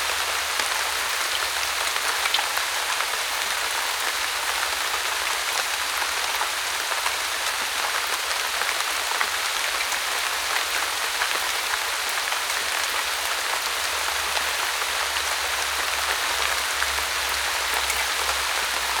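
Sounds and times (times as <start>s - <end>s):
rain in a deciduous forest: 0.0s - 18.9s.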